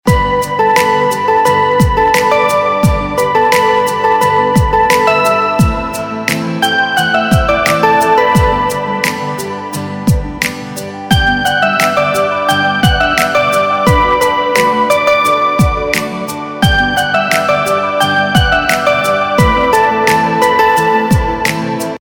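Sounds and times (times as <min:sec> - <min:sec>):
instrumental ringtone: 0:00.1 - 0:10.4, 0:11.0 - 0:21.4.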